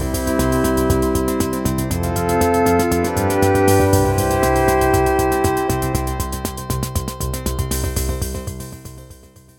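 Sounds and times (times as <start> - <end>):
keyboard piano sound with reverb effect: 0.0 - 9.3.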